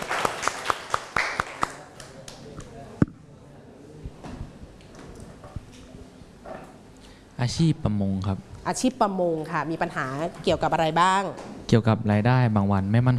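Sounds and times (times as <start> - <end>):
classroom students clapping: 0.0 - 2.5
speech: 7.4 - 13.1.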